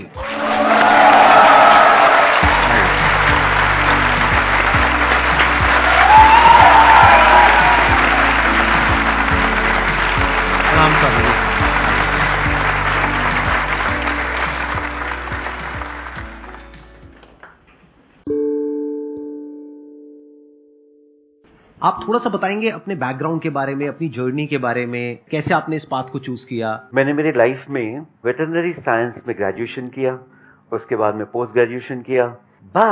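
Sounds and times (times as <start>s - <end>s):
people whooping: 0.1s - 4.4s, 5.2s - 10.0s
loud sustained audience applause welcoming a guest: 0.1s - 17.6s
steady low musical tones: 0.2s - 17.2s
speech: 22.1s - 32.9s.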